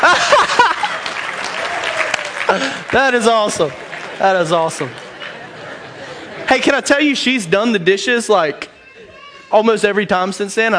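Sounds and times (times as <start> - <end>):
audience applause: 0.0 - 6.2
laughter: 0.0 - 7.8
speech: 2.5 - 5.0, 6.5 - 8.7, 9.5 - 10.7.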